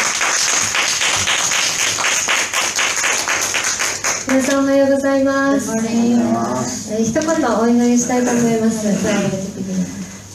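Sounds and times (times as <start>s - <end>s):
crowd applauding: 0.0s - 4.6s
speech: 4.3s - 10.0s.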